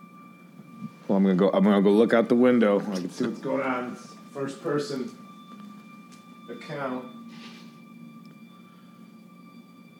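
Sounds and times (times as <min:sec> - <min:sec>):
speech: 0:01.1 - 0:05.2, 0:06.5 - 0:07.5
fire truck siren: 0:02.3 - 0:09.9.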